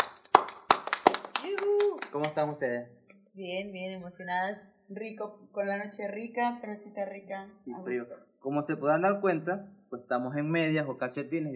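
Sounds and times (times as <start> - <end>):
applause for guests: 0.0 - 2.6
person cheering: 1.1 - 2.5
speech: 1.5 - 11.5.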